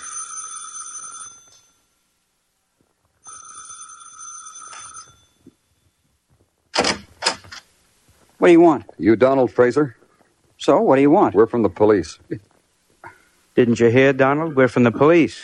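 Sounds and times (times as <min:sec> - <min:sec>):
doorbell ringing: 0:00.0 - 0:01.9, 0:03.2 - 0:05.6
speech: 0:08.4 - 0:10.0, 0:10.6 - 0:12.5, 0:13.6 - 0:15.4.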